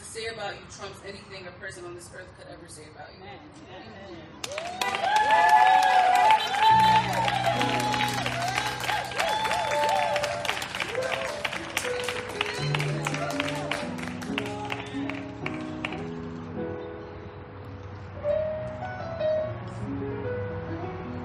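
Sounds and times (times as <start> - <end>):
speech: 0.2 - 7.9
crowd applause: 4.4 - 16.0
cheering voices: 4.5 - 11.5
keyboard or organ chords: 6.3 - 21.2.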